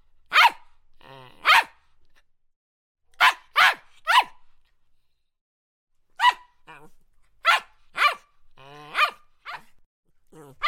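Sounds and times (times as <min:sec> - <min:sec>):
poodle barking sharp high yappy barks: 0:00.3 - 0:00.7, 0:01.4 - 0:01.8, 0:03.2 - 0:04.4, 0:06.2 - 0:06.8, 0:07.4 - 0:09.8, 0:10.4 - 0:10.6.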